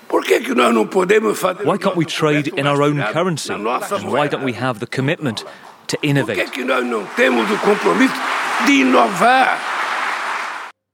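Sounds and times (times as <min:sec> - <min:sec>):
speech: 0:00.2 - 0:09.7
laughter: 0:01.2 - 0:10.7
hearty crowd applause: 0:05.2 - 0:10.8.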